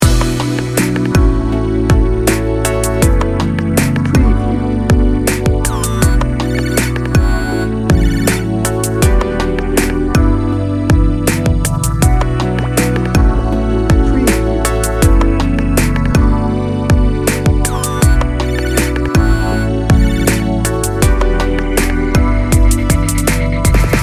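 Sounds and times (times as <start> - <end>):
dreamy music loop: 0.0 - 24.0.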